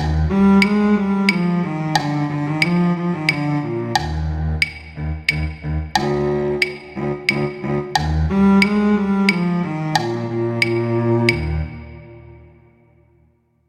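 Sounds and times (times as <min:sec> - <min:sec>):
cello: 0:00.0 - 0:12.8.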